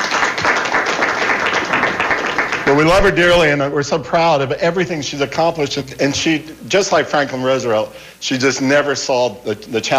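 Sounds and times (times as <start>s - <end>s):
audience applause: 0.0s - 3.2s
speech: 2.7s - 9.9s.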